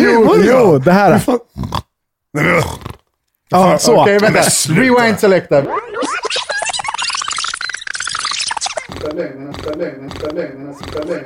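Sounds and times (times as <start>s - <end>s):
speech: 0.6s - 2.9s, 3.5s - 6.8s, 9.0s - 11.2s
person imitating a bulldog's snoring breath: 1.5s - 3.0s, 8.9s - 11.2s
laughter: 4.5s - 7.3s, 8.5s - 11.2s.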